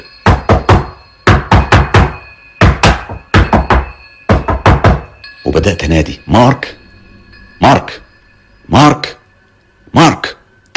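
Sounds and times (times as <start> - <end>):
loud banging on an office door: 0.2 - 5.2
speech: 5.6 - 6.8, 7.6 - 8.0, 8.7 - 9.2.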